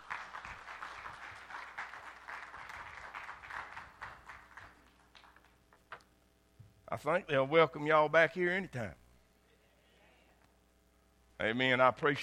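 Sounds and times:
audience at a church service clapping for performers: 0:00.0 - 0:05.6
speech: 0:07.0 - 0:09.0, 0:11.4 - 0:12.2.

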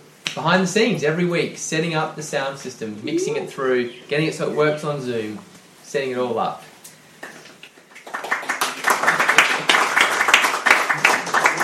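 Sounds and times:
speech: 0:00.4 - 0:06.7
applause: 0:07.2 - 0:11.6.

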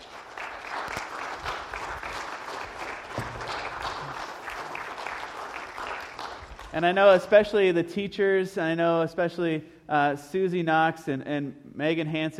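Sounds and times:
audience round of applause: 0:00.0 - 0:06.8
speech: 0:06.8 - 0:12.3.

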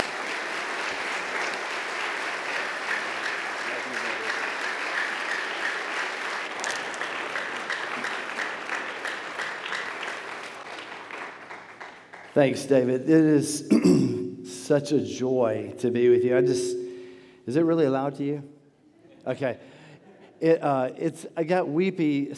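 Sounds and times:
audience applauding with many hands clapping together: 0:00.0 - 0:12.3
speech: 0:12.4 - 0:16.8, 0:17.5 - 0:18.5, 0:19.2 - 0:19.7, 0:20.4 - 0:22.3.

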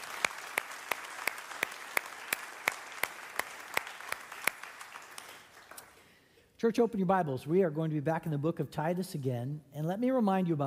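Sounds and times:
audience applause: 0:00.0 - 0:06.0
speech: 0:06.6 - 0:10.6.

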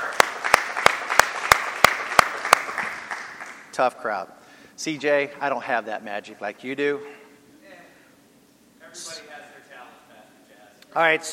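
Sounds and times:
audience clapping hands: 0:00.0 - 0:03.7
speech: 0:03.8 - 0:07.2, 0:10.9 - 0:11.3.

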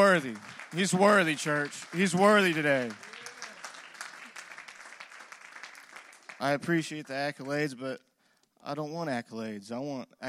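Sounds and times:
speech: 0:00.0 - 0:03.1, 0:06.4 - 0:10.2
audience hand clapping: 0:00.0 - 0:07.8.

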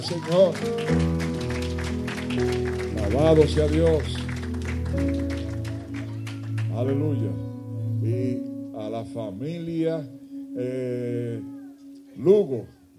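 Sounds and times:
speech: 0:00.0 - 0:01.2, 0:02.3 - 0:04.2, 0:04.9 - 0:05.4, 0:06.8 - 0:07.4, 0:08.0 - 0:11.6, 0:12.2 - 0:12.9
applause: 0:00.0 - 0:07.2.

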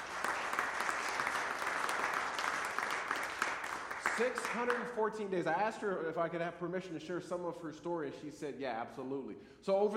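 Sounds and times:
crowd applauding: 0:00.0 - 0:05.0
speech: 0:04.2 - 0:09.9.

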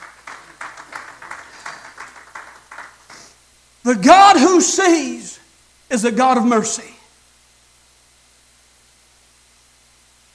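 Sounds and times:
crowd applauding in a room: 0:00.0 - 0:03.4
speech: 0:03.9 - 0:07.0.

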